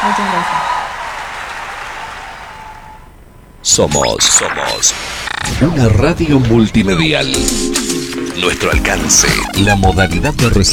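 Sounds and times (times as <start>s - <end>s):
audience applause: 0.0s - 3.1s
speech: 3.7s - 10.7s.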